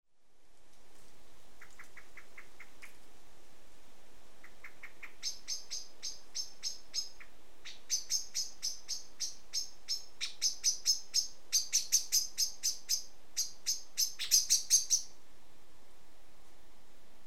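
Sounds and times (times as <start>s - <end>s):
common blackbird chink calls: 1.6s - 3.0s, 4.4s - 15.2s.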